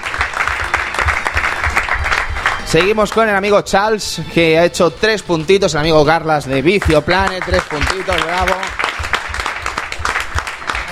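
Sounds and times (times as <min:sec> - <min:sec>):
applause for contestants in a trivia quiz final: 0:00.0 - 0:03.8, 0:06.4 - 0:10.9
speech: 0:02.7 - 0:08.8.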